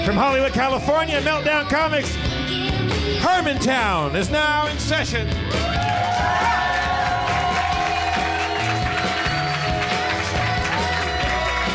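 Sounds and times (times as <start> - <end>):
speech: 0.1 - 2.3, 3.0 - 5.8
crowd applauding: 5.5 - 11.7.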